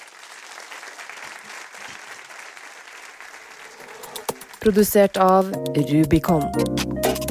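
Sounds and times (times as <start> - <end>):
audience applause: 0.0 - 4.7
speech: 4.6 - 7.2.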